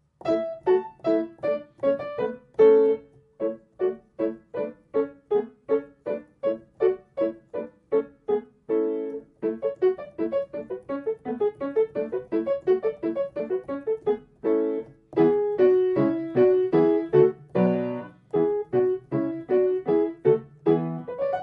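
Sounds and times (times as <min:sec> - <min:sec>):
rondino piano accompaniment: 0:00.0 - 0:21.4.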